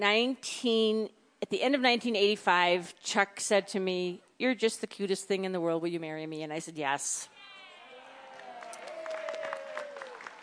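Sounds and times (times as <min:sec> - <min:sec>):
speech: 0:00.0 - 0:07.3
man clapping hands: 0:08.4 - 0:10.4.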